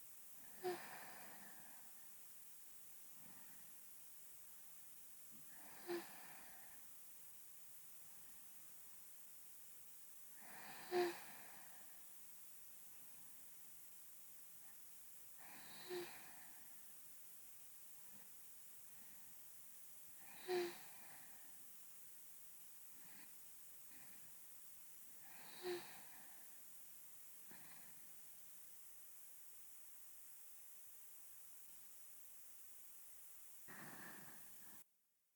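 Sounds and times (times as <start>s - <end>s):
sleeping breath: 0.4s - 2.1s, 3.2s - 3.8s, 5.4s - 6.9s, 10.4s - 12.1s, 15.4s - 16.9s, 20.1s - 21.6s, 22.9s - 24.4s, 25.1s - 26.7s, 27.4s - 28.2s, 33.6s - 34.8s.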